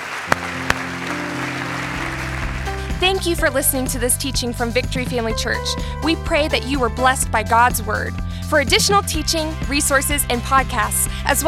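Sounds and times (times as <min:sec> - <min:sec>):
crowd applauding: 0:00.0 - 0:03.8
speech: 0:03.0 - 0:11.4.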